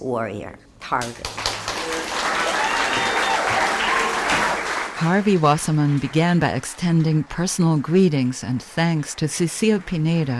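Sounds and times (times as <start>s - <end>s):
speech: 0.0s - 2.2s, 5.0s - 10.3s
crowd applauding: 1.0s - 10.3s
faint cheering: 1.8s - 4.7s.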